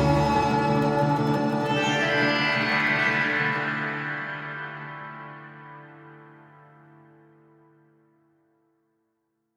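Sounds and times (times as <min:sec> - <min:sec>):
Arabian palace music: 0:00.0 - 0:06.2.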